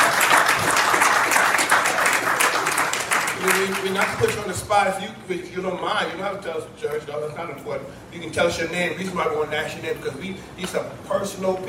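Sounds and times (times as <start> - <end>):
church congregation clapping in the sanctuary: 0.0 - 4.5
speech: 3.6 - 11.6.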